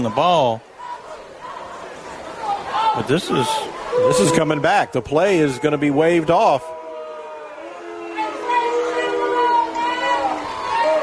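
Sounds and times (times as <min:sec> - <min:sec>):
speech: 0:00.0 - 0:00.7, 0:03.0 - 0:06.7
home crowd reacting to penalty call: 0:00.0 - 0:11.0.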